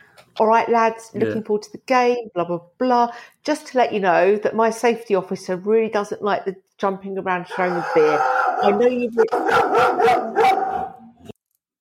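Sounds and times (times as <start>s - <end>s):
speech: 0.4s - 10.6s
dog barking at a man arriving with a skip in the front garden: 7.5s - 11.1s.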